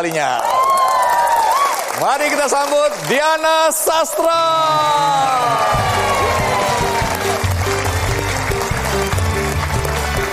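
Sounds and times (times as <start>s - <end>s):
speech: 0.0s - 0.6s, 2.0s - 6.8s
crowd applauding and cheering: 0.0s - 10.3s.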